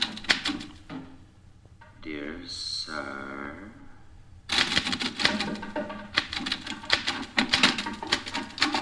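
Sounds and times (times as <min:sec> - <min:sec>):
mechanical typewriter typing: 0:00.0 - 0:01.0, 0:04.5 - 0:08.7
speech: 0:02.0 - 0:03.8.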